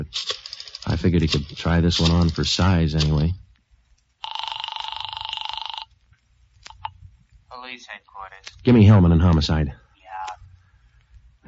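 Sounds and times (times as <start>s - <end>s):
speech: 0.0s - 3.4s, 7.8s - 9.8s
telephone ringing during outgoing call: 4.2s - 6.0s.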